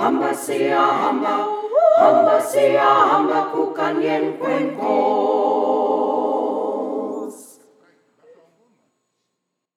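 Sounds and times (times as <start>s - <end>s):
choir singing all parts: 0.0s - 7.7s.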